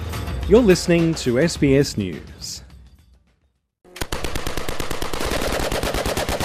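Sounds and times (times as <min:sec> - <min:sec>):
speech: 0:00.5 - 0:02.6
Ukrainian air defense units fighting drones: 0:04.0 - 0:06.4.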